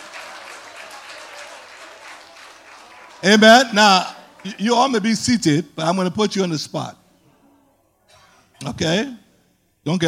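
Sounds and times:
audience clapping: 0.0 - 5.1
speech: 3.2 - 7.0, 8.6 - 9.2, 9.8 - 10.0.

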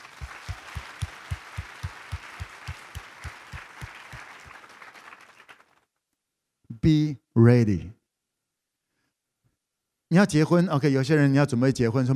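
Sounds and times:
audience applause: 0.0 - 5.8
speech: 6.8 - 8.0, 10.1 - 12.1.

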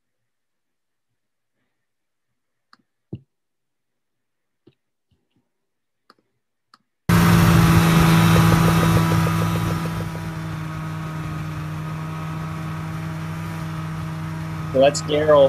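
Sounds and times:
snowmobile engine pulling a dog sled: 7.1 - 15.4
speech: 14.8 - 15.4.

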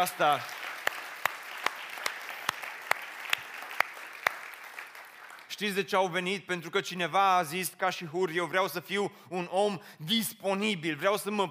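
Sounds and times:
speech: 0.0 - 0.6, 5.6 - 11.4
audience applause: 0.0 - 5.6.

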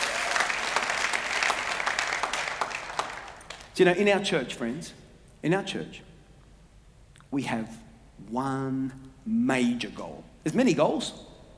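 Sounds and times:
audience applauding: 0.0 - 3.8
speech: 3.8 - 6.1, 7.3 - 11.3.

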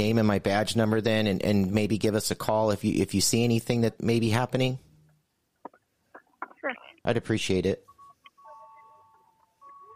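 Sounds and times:
speech: 0.0 - 4.8, 6.6 - 7.9
store door bell ringing: 8.0 - 9.9.

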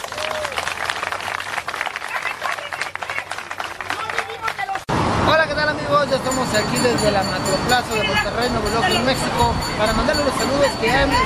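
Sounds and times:
audience applause at a live stage show: 0.0 - 4.8
speech: 6.1 - 11.2.

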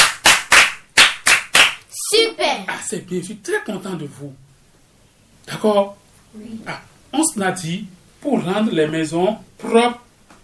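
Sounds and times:
classroom applause in unison: 0.0 - 1.8
speech: 2.5 - 4.5, 5.5 - 10.0.

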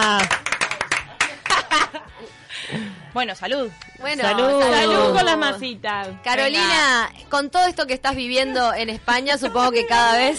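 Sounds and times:
quick sharp claps: 0.1 - 1.7
people laughing: 0.8 - 2.4
speech: 3.2 - 10.3.

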